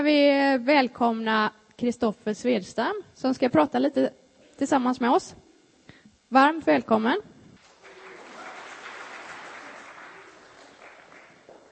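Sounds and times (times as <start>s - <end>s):
speech: 0.0s - 5.4s, 6.3s - 7.3s
audience applause: 7.6s - 11.6s.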